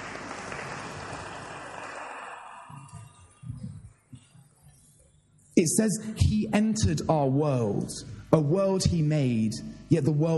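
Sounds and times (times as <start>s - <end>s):
crowd round of applause: 0.0s - 3.3s
speech: 5.6s - 10.3s.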